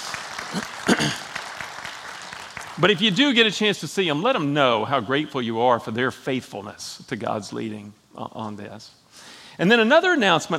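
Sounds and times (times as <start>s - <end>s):
audience applause: 0.0s - 3.2s
speech: 0.5s - 1.3s, 2.8s - 10.5s.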